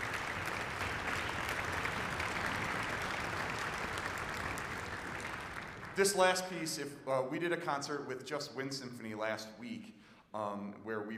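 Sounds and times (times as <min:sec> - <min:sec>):
audience applause: 0:00.0 - 0:06.3
speech: 0:06.0 - 0:11.1.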